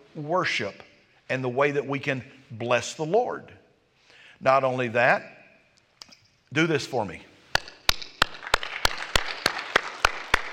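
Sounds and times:
speech: 0:00.2 - 0:03.6, 0:04.4 - 0:05.4, 0:06.5 - 0:07.3
audience clapping in a steady beat: 0:07.5 - 0:10.5.

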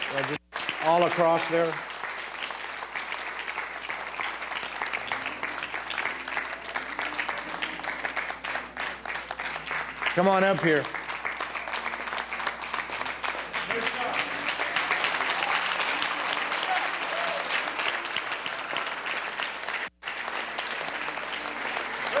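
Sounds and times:
applause from a large audience: 0:00.0 - 0:22.1
speech: 0:00.1 - 0:01.9, 0:10.2 - 0:11.0.

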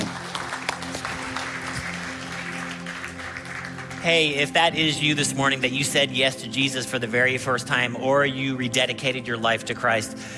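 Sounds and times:
audience round of applause: 0:00.0 - 0:05.0
speech: 0:04.0 - 0:10.3.

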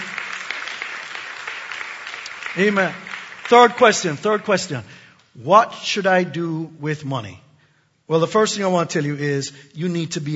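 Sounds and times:
crowd clapping: 0:00.0 - 0:04.9
speech: 0:02.6 - 0:07.4, 0:08.1 - 0:10.3.

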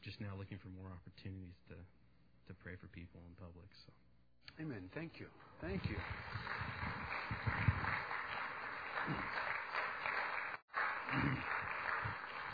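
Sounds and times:
speech: 0:00.0 - 0:07.9, 0:09.0 - 0:09.5
polite golf clap from audience: 0:05.4 - 0:12.5.

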